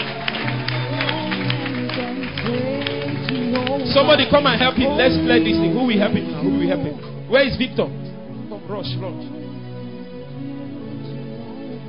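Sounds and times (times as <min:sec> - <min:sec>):
church congregation clapping during a healing service: 0:00.0 - 0:06.1
speech: 0:04.0 - 0:08.0, 0:08.7 - 0:09.4.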